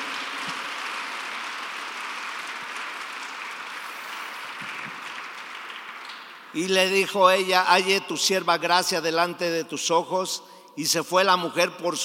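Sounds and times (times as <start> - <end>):
audience applause: 0.0 - 6.6
speech: 6.5 - 12.0.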